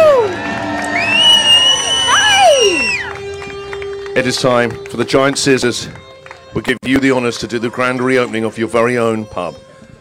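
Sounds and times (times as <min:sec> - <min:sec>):
crowd applause and cheering: 0:00.0 - 0:05.0
speech: 0:04.2 - 0:09.7.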